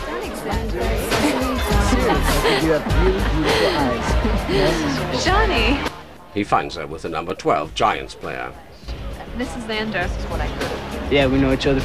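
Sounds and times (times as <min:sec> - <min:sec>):
crowd chatter at a dance: 0:00.0 - 0:11.8
laughter: 0:00.0 - 0:11.8
speech: 0:02.1 - 0:11.8.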